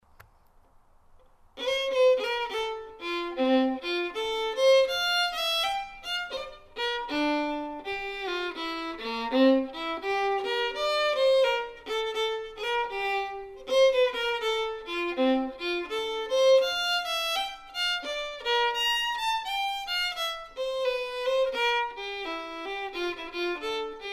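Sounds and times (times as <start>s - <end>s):
fiddle playing a hornpipe: 1.6s - 24.1s.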